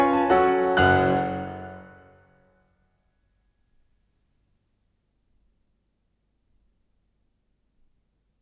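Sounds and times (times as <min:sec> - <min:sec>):
solo piano mazurka in B minor: 0:00.0 - 0:02.2.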